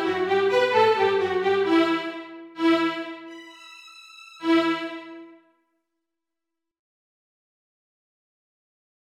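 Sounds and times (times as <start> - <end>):
violin strings: 0.0 - 5.5.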